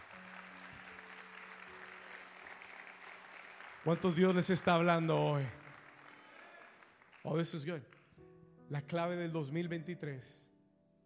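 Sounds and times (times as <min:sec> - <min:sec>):
loud audience applause: 0:00.0 - 0:08.1
speech: 0:03.8 - 0:05.6, 0:07.3 - 0:08.0, 0:08.7 - 0:10.5.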